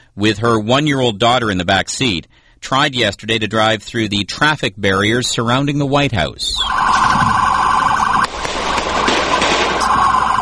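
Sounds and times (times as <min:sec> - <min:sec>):
speech: 0:00.2 - 0:07.3
police opening fire: 0:08.1 - 0:10.4.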